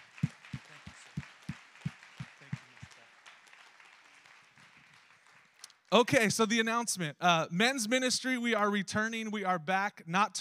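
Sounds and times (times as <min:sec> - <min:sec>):
audience applause: 0:00.0 - 0:05.6
speech: 0:05.9 - 0:10.3.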